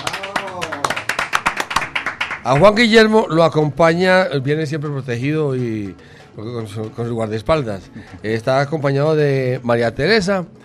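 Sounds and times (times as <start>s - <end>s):
applause in studio: 0.0s - 3.3s
speech: 2.4s - 10.6s.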